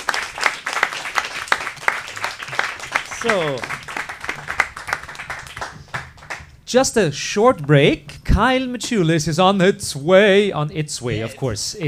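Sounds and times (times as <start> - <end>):
audience applause: 0.0 - 6.5
speech: 3.2 - 3.8, 6.7 - 11.8.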